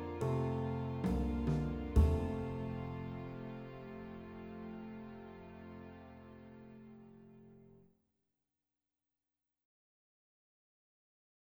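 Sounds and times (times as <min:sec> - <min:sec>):
slow blues music: 0:00.0 - 0:06.0.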